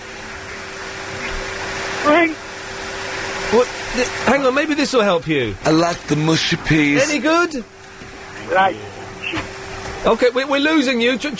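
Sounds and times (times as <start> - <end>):
vacuum cleaner running: 0.0 - 11.3
speech: 2.0 - 2.4, 3.5 - 7.8, 8.5 - 9.4, 10.0 - 11.3.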